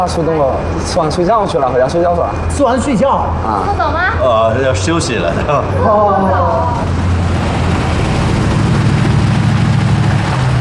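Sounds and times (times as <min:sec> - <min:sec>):
speech: 0:00.0 - 0:07.0
Mercedes-Benz G-Class SUV engine rumble: 0:02.3 - 0:10.6.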